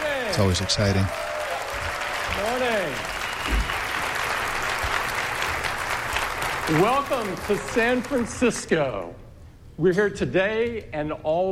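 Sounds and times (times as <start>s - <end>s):
large crowd applauding Tim Cook at a developer event in San Francisco: 0.0s - 8.7s
speech: 0.3s - 1.2s, 2.4s - 3.8s, 6.7s - 9.2s, 9.8s - 11.4s.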